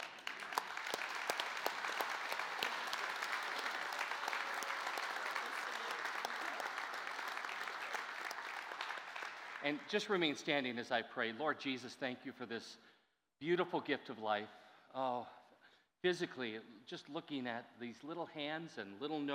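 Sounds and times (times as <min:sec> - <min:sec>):
audience applauding: 0:00.0 - 0:10.3
speech: 0:09.6 - 0:15.4, 0:16.0 - 0:19.3.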